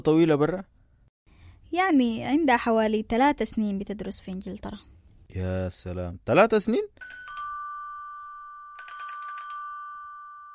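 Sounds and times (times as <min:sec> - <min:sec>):
speech: 0:00.0 - 0:00.7, 0:01.7 - 0:07.2
doorbell electronic chime: 0:07.0 - 0:10.5.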